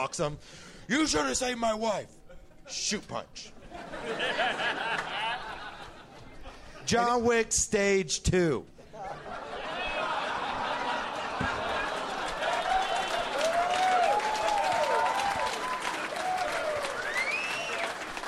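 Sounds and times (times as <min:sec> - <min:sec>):
speech: 0:00.0 - 0:05.1, 0:06.9 - 0:09.2
laughter: 0:03.4 - 0:07.0, 0:08.8 - 0:17.1
audience applause: 0:10.0 - 0:18.2.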